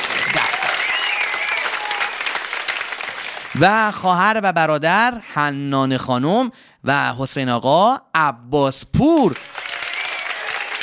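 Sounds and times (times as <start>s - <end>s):
audience clapping and cheering: 0.0s - 4.0s, 9.0s - 10.8s
speech: 3.6s - 9.6s.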